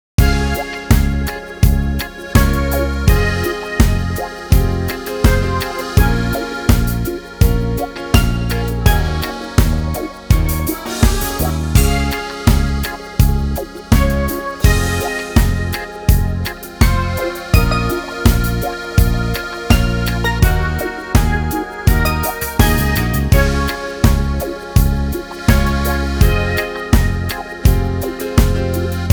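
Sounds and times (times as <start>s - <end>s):
reggae music: 0.2s - 29.1s.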